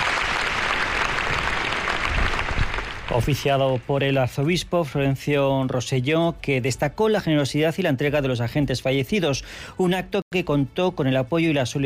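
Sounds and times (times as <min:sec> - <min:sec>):
applause at a funeral in a cathedral: 0:00.0 - 0:04.1
speech: 0:03.1 - 0:11.8.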